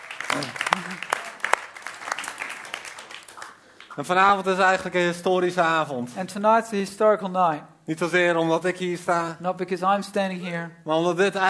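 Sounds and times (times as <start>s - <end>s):
audience applause: 0.0s - 4.0s
speech: 4.0s - 11.4s.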